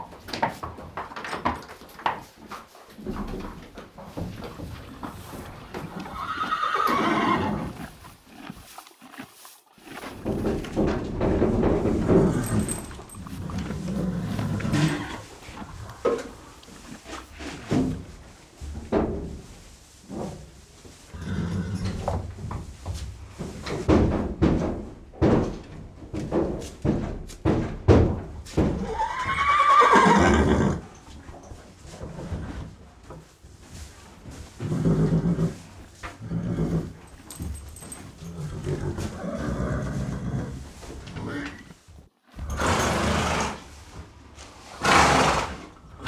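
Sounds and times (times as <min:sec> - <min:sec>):
horse hooves clopping on a hard floor: 0:00.0 - 0:46.0
rustling and knocking: 0:00.2 - 0:20.6, 0:22.0 - 0:28.8, 0:31.2 - 0:39.1
horse whinnying: 0:04.6 - 0:11.0, 0:11.8 - 0:17.5, 0:28.8 - 0:31.0, 0:37.9 - 0:40.6, 0:42.4 - 0:43.7, 0:44.8 - 0:46.0.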